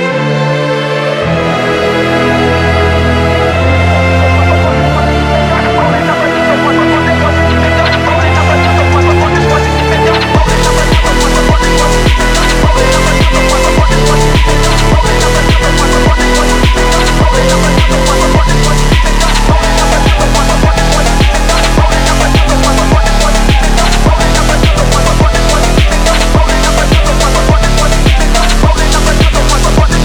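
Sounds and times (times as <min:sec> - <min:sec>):
phonk music: 0:00.2 - 0:30.0.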